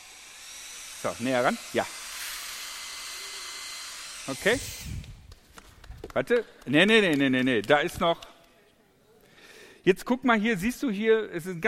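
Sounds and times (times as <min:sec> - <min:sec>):
hair dryer blowing: 0:00.0 - 0:05.3
speech: 0:01.0 - 0:02.0, 0:04.2 - 0:05.0, 0:06.1 - 0:08.3, 0:09.8 - 0:11.6.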